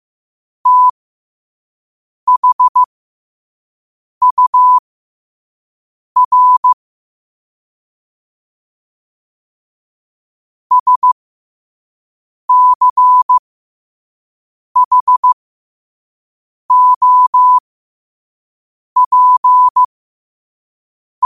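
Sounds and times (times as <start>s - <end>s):
morse code at 5 wpm: 0.6s - 1.0s, 2.3s - 2.9s, 4.2s - 4.8s, 6.2s - 6.8s, 10.7s - 11.2s, 12.5s - 13.4s, 14.8s - 15.4s, 16.7s - 17.6s, 19.0s - 19.9s.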